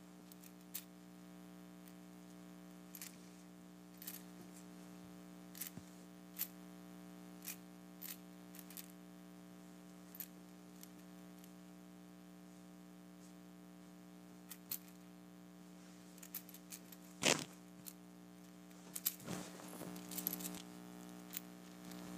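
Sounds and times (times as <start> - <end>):
steady low hum: 0.0 - 22.1
clam shells rattling in a glass: 19.9 - 22.0.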